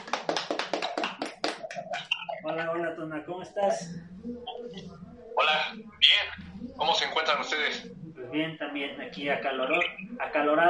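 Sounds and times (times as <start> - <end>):
hand claps: 0.0 - 2.3
speech: 2.5 - 5.9, 6.8 - 10.6.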